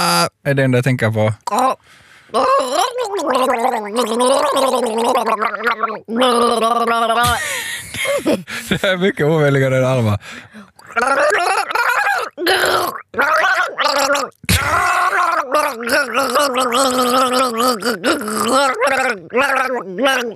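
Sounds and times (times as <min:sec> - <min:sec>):
speech: 0:00.0 - 0:20.3
person gargling a tune imitating a film soundtrack: 0:01.4 - 0:07.4, 0:10.8 - 0:20.3
laughter: 0:07.2 - 0:09.1.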